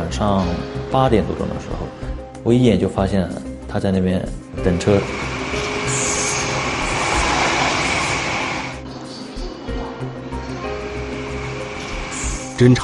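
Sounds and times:
speech: 0:00.1 - 0:05.3, 0:12.6 - 0:12.8
passenger train bound for Nanjing rumbling on rails: 0:04.5 - 0:12.8
thin high train wheel squeal: 0:04.8 - 0:09.2, 0:10.4 - 0:12.6.

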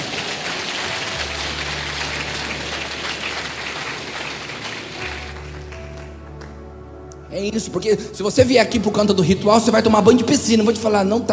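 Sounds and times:
audience applause: 0:00.0 - 0:06.6
speech: 0:07.3 - 0:11.3.

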